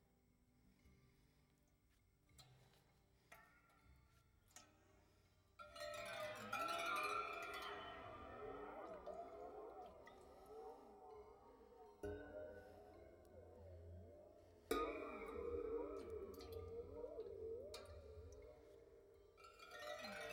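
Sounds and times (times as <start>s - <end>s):
waterphone: 5.6s - 20.3s.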